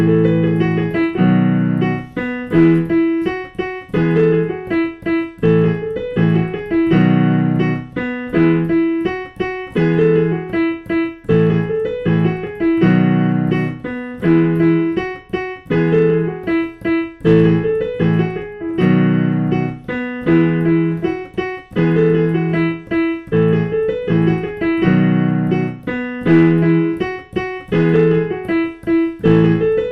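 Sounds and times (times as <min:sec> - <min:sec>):
piano playing a Christmas carol: 0:00.0 - 0:29.8.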